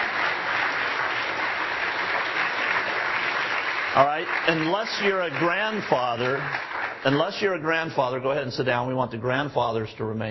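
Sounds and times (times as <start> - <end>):
audience applause: 0.0 - 8.2
speech: 4.0 - 10.2.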